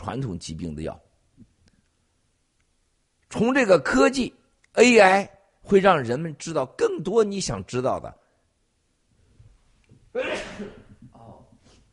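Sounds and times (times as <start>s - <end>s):
speech: 0.0s - 1.1s, 3.3s - 8.2s
sneeze: 10.1s - 11.0s.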